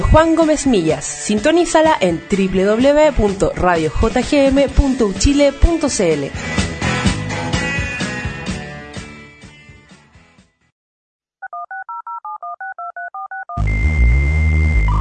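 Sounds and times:
music: 0.0s - 10.7s, 13.6s - 14.9s
speech: 0.1s - 6.6s
telephone keypad tones in a jingle: 11.4s - 13.6s.

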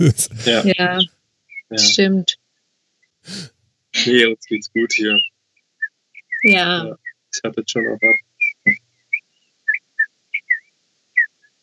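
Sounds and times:
laughter: 0.0s - 0.8s
speech: 0.0s - 2.4s, 3.2s - 5.3s, 6.4s - 8.8s
real bird whistling outside: 4.8s - 7.2s, 7.8s - 11.3s.

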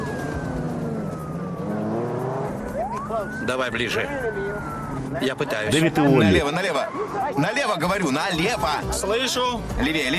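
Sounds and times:
car engine roaring at speed in a chase, driving onto a sidewalk: 0.0s - 6.5s
speech: 3.2s - 10.1s.

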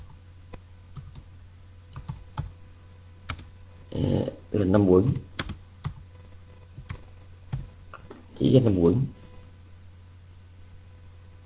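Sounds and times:
typing on a computer keyboard: 0.9s - 1.3s, 1.9s - 2.5s, 3.3s - 3.5s, 5.2s - 6.0s, 6.8s - 7.7s
speech: 4.0s - 5.3s, 8.4s - 9.2s.

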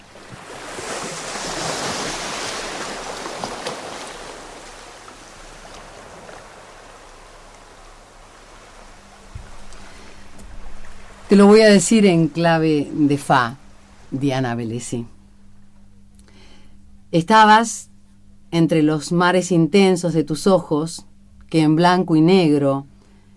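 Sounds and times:
ocean waves: 0.0s - 14.9s
speech: 11.3s - 15.1s, 17.1s - 17.9s, 18.5s - 22.9s.

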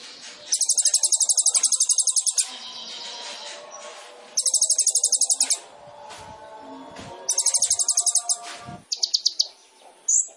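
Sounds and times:
background noise: 0.0s - 10.3s
sunbird buzzy trill: 0.5s - 3.6s, 4.4s - 5.7s, 7.3s - 9.5s.

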